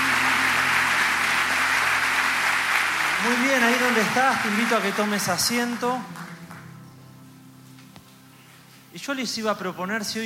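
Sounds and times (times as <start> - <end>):
audience applauding: 0.0 - 6.8
speech: 3.2 - 6.2, 9.0 - 10.2.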